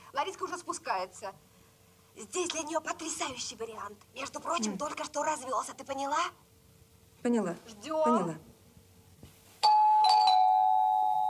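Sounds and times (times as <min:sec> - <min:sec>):
speech: 0:00.2 - 0:01.5, 0:02.2 - 0:06.5, 0:07.2 - 0:08.5
electronic doorbell chime: 0:09.6 - 0:11.2.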